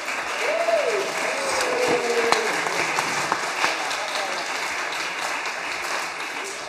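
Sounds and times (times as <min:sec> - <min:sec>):
audience applause: 0:00.0 - 0:06.6
faint voices: 0:00.4 - 0:04.8.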